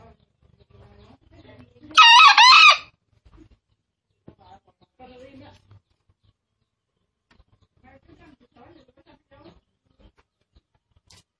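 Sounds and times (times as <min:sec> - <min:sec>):
green junglefowl crowing: 0:02.0 - 0:02.9.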